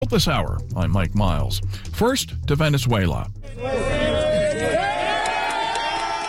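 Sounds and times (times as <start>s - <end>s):
speech: 0.1s - 4.1s
crowd cheering at rescue: 3.4s - 6.2s.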